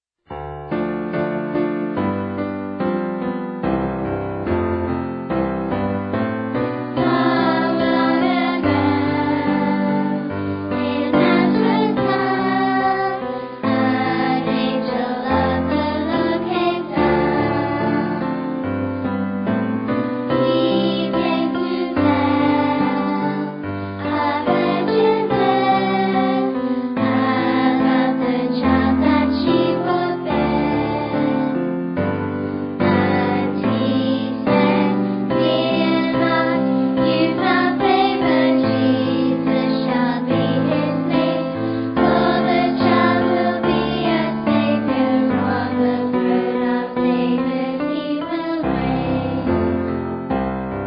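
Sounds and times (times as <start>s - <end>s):
music: 0.2s - 50.8s.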